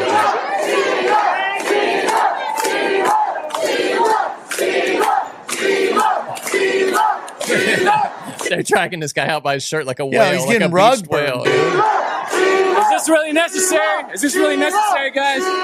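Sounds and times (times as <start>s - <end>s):
crowd yelling at a campaign event: 0.0s - 8.9s, 10.2s - 15.6s
laughter: 6.0s - 12.0s
speech: 8.6s - 12.0s, 13.0s - 15.6s.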